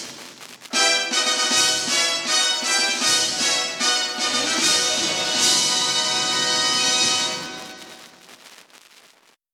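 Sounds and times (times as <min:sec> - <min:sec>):
orchestral fanfare: 0:00.7 - 0:08.0.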